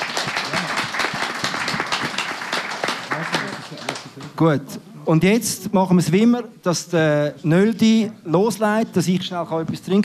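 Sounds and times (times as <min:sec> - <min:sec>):
audience applause: 0:00.0 - 0:04.3
speech: 0:04.4 - 0:10.0.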